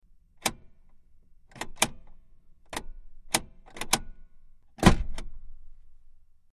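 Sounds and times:
Jeep Wagoneer parking brake locking and releasing from interior perspective: 0:00.4 - 0:05.4.

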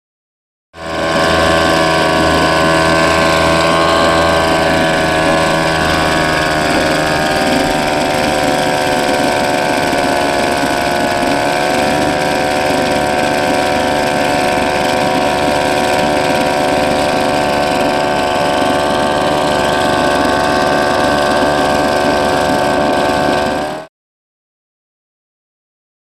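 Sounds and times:
outboard motor running: 0:00.8 - 0:23.9.

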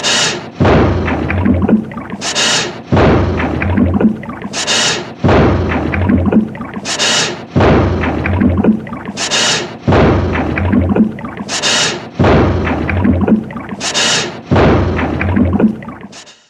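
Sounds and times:
pounding machine: 0:00.0 - 0:15.8
liquid: 0:01.3 - 0:04.8, 0:05.5 - 0:12.1, 0:15.0 - 0:16.2.

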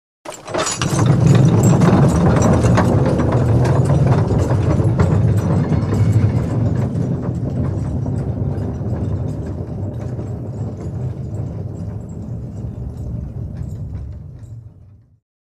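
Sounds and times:
pit pony tub carriages rolling: 0:00.3 - 0:15.2.

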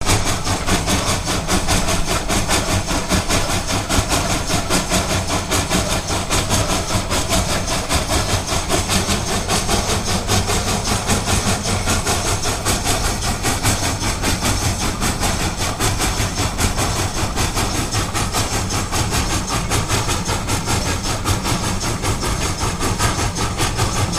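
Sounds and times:
steam locomotive in daylight: 0:00.0 - 0:24.1.

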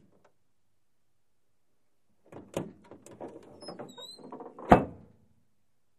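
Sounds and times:
squeaky antique Buick trunk opening and closing: 0:02.4 - 0:05.1.

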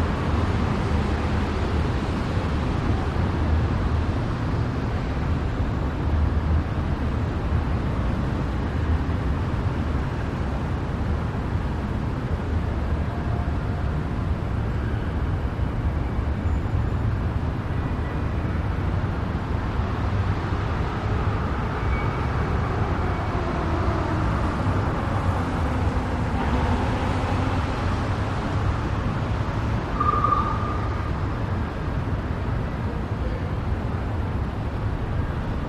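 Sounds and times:
light cars passing by: 0:00.0 - 0:35.6
steady city traffic: 0:00.0 - 0:35.6.

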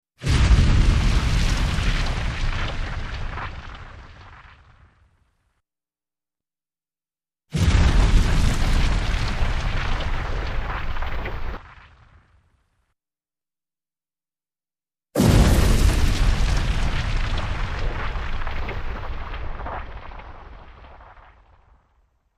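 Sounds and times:
explosive fire burst: 0:00.2 - 0:04.9, 0:07.6 - 0:12.2, 0:15.2 - 0:21.6.

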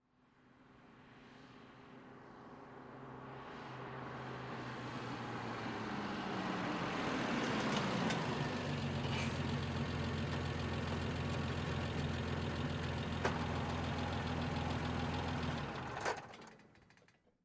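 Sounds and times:
BMW 530i driving at medium speed: 0:00.9 - 0:16.3
BMW 530i engine switching off: 0:06.8 - 0:17.1.

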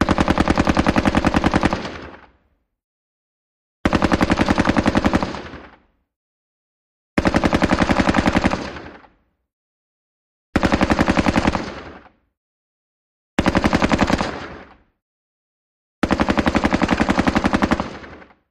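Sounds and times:
M-60 machine gun long burst: 0:00.0 - 0:02.2, 0:03.8 - 0:05.7, 0:07.2 - 0:09.0, 0:10.6 - 0:12.0, 0:13.4 - 0:14.7, 0:16.0 - 0:18.3.

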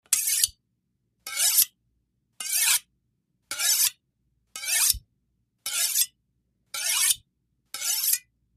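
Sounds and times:
carving knife being sharpened slowly: 0:00.0 - 0:00.6, 0:01.3 - 0:01.7, 0:02.4 - 0:02.9, 0:03.5 - 0:04.0, 0:04.6 - 0:05.0, 0:05.6 - 0:08.3.

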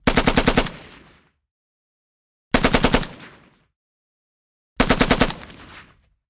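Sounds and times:
AK47 long bursts: 0:00.0 - 0:01.2, 0:02.5 - 0:03.5, 0:04.8 - 0:06.0.

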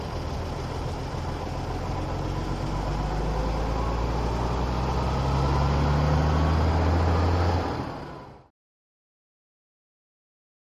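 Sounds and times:
coach bus starting and pulling away: 0:00.0 - 0:08.5.

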